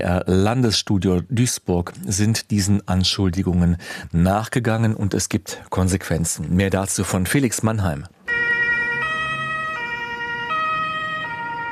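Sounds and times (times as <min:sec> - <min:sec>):
speech: 0:00.0 - 0:08.6
ambulance siren: 0:08.2 - 0:11.7.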